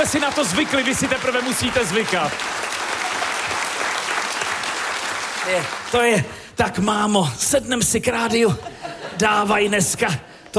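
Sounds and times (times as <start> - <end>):
speech: 0.0 - 2.7, 5.5 - 10.5
audience applause in Havlíčkův Brod: 0.0 - 6.0
laughter: 8.3 - 10.5.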